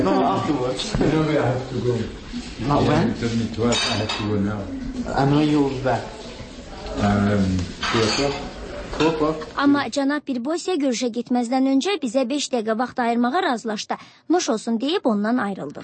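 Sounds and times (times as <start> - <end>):
speech: 0.0 - 6.2, 7.0 - 15.8
cutlery and dishes clinking during lunch: 3.6 - 4.4, 7.8 - 9.3.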